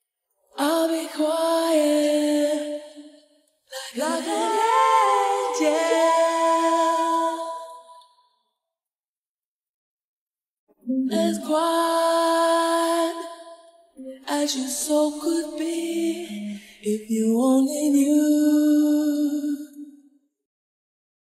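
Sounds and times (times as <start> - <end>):
a cappella singing: 0.5 - 8.1, 10.8 - 20.0.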